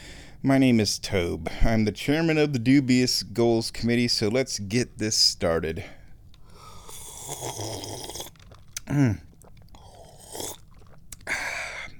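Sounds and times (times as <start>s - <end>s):
speech: 0.4s - 6.0s, 7.3s - 8.1s, 8.9s - 9.3s
person slurping lemon-flavored tea: 6.7s - 11.9s
throaty gulp of lemon-flavored tea: 6.8s - 11.9s.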